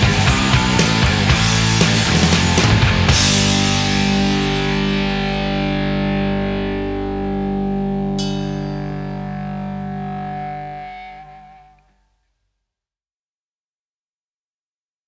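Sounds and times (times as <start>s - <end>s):
alternative guitar solo: 0.0s - 12.0s.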